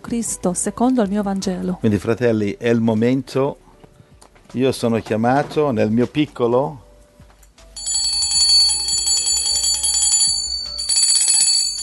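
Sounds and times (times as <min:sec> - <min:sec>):
speech: 0:00.1 - 0:03.6, 0:04.5 - 0:06.8
bell ringing: 0:07.8 - 0:11.8.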